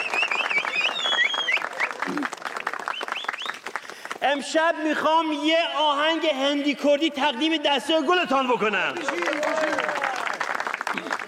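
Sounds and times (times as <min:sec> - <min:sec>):
sharp whistles: 0:00.0 - 0:02.0, 0:02.9 - 0:03.6
audience clapping at a lively gathering: 0:00.0 - 0:04.6, 0:08.8 - 0:11.2
speech: 0:02.1 - 0:02.4, 0:04.2 - 0:09.8.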